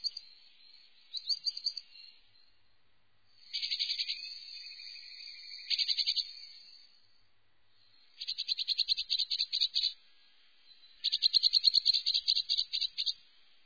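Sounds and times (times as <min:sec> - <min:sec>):
Eurasian blue tit calling and singing: 0:01.1 - 0:02.0, 0:03.5 - 0:06.8, 0:08.2 - 0:10.0, 0:10.9 - 0:13.2.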